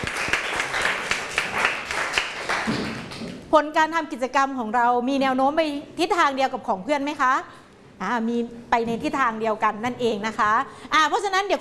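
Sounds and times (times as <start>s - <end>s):
class applauding: 0.0s - 3.4s
speech: 3.5s - 11.5s.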